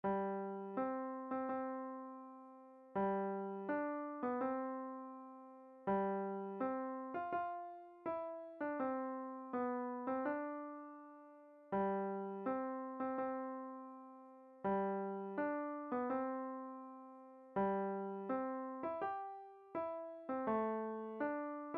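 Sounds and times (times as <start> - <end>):
beginner piano piece: 0.0 - 21.7.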